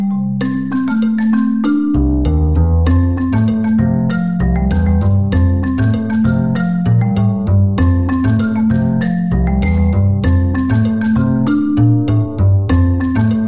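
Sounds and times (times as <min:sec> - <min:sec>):
backing track music: 0:00.0 - 0:13.4.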